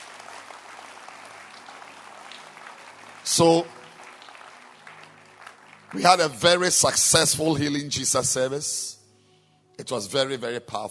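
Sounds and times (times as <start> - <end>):
audience clapping hands: 0.0 - 7.4
speech: 3.3 - 3.8, 5.9 - 9.0, 9.8 - 10.8.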